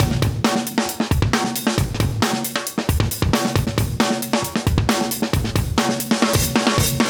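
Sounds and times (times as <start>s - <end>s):
135 BPM funk breaks: 0.0s - 7.0s.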